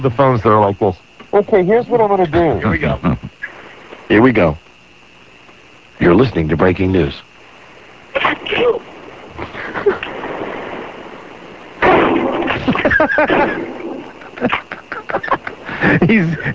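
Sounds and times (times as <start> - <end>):
speech: 0.0 - 3.3, 4.1 - 4.6, 6.0 - 7.3, 13.2 - 13.8, 14.4 - 16.5
laughter: 9.4 - 10.2, 12.5 - 16.5
shotgun shots in a row: 11.8 - 13.5.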